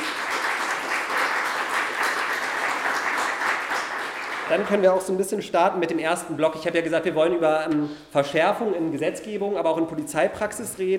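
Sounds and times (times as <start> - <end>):
audience applause: 0.0 - 4.9
speech: 4.5 - 10.9.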